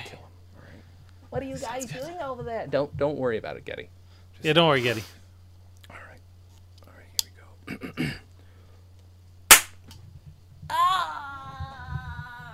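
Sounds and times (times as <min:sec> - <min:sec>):
speech: 0:01.3 - 0:05.2
cap gun firing: 0:09.5 - 0:09.8
person moaning: 0:10.7 - 0:12.5.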